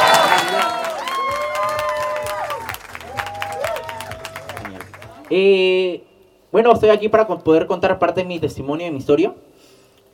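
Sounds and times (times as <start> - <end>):
audience applause: 0.0 - 5.4
speech: 5.3 - 9.5.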